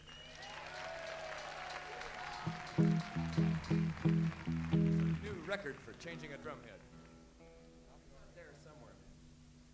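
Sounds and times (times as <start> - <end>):
audience applause: 0.0 - 7.0
speech: 2.5 - 6.9.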